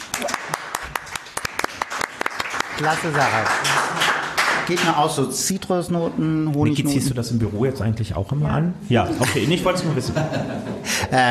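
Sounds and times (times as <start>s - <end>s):
scattered hand claps for a wine princess at a wine tasting: 0.0s - 5.1s
speech: 2.8s - 3.9s, 4.7s - 11.3s
laughter: 9.0s - 11.3s.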